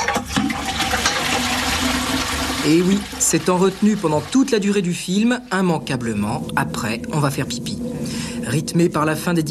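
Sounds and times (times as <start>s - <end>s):
toilet flush with water tank emptying: 0.0s - 8.5s
speech: 2.6s - 7.8s, 8.5s - 9.5s.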